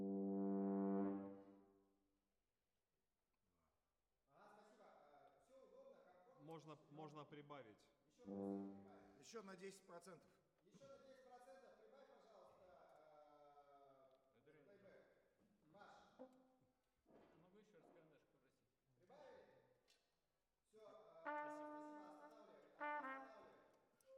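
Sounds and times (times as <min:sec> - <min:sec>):
brass instruments: 0:00.0 - 0:01.7, 0:08.2 - 0:09.4, 0:21.2 - 0:23.8.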